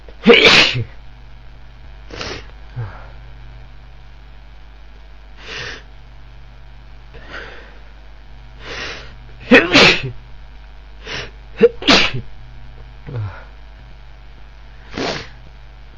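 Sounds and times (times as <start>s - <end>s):
man sneezing: 0.2s - 0.9s, 9.4s - 10.2s, 11.1s - 12.3s, 13.1s - 13.5s.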